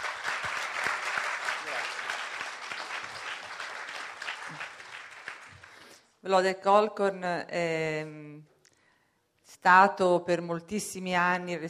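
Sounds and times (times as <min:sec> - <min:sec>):
audience applause: 0:00.0 - 0:05.8
speech: 0:06.2 - 0:08.5, 0:09.6 - 0:11.6.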